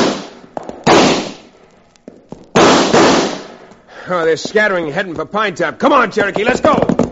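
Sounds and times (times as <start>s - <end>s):
gunshots in a western radio shootout: 0.0s - 1.5s, 2.5s - 3.6s
small clicks and pops: 0.4s - 3.8s
speech: 4.1s - 7.0s.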